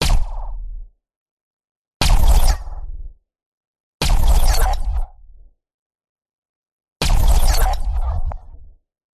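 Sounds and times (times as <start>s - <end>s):
punchy science fiction laser shot bursts: 0.0s - 0.6s, 2.0s - 2.9s, 4.0s - 5.1s, 7.0s - 8.6s.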